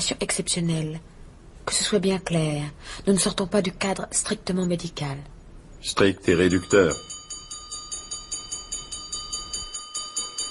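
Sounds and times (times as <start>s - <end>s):
speech: 0.0s - 7.1s
dinner bell ringing: 6.2s - 10.4s.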